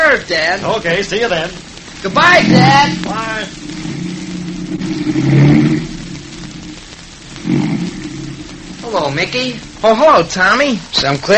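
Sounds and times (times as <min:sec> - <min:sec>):
speech: 0:00.1 - 0:03.8, 0:04.8 - 0:05.9, 0:08.8 - 0:11.3
car engine driving off: 0:02.0 - 0:10.3.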